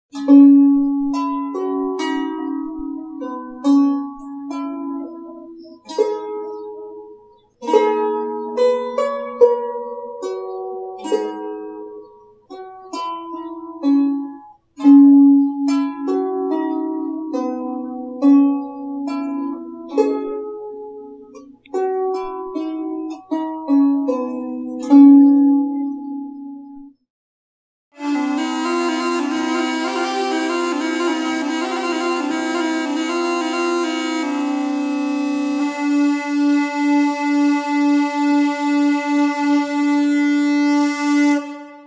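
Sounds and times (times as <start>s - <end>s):
lyre playing: 0.1s - 27.0s, 28.0s - 41.8s.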